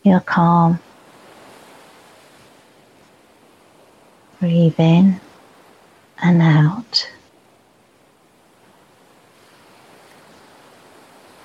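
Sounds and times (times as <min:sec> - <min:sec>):
speech: 0:00.0 - 0:00.8, 0:04.4 - 0:05.2, 0:06.2 - 0:07.2
ocean waves breaking on shore: 0:00.0 - 0:11.4.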